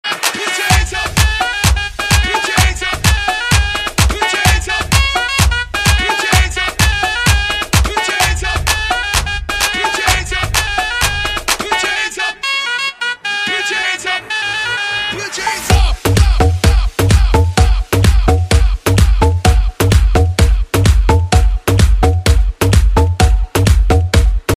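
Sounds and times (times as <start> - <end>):
hands up version ringtone: 0.0 - 24.5.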